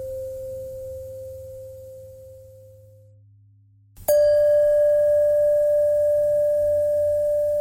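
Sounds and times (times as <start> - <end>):
bells ringing: 4.1 - 7.4.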